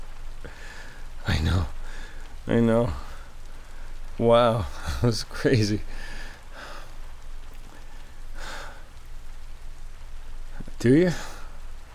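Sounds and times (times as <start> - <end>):
heavy rain pouring during a storm: 0.0 - 11.9
speech: 1.3 - 1.8, 2.4 - 3.1, 4.2 - 6.2, 10.8 - 11.3
breathy bursts: 1.8 - 5.1, 5.8 - 11.9.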